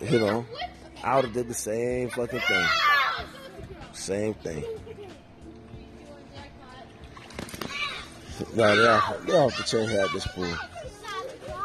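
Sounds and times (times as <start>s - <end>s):
speech: 0.0s - 2.9s, 4.0s - 4.8s, 8.5s - 10.7s
children playing: 0.0s - 11.6s.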